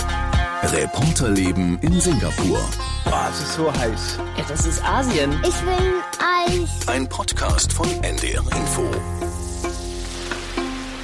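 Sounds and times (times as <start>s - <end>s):
speech: 0.7s - 9.3s
heavy rain pouring down in Singapore: 9.8s - 11.0s.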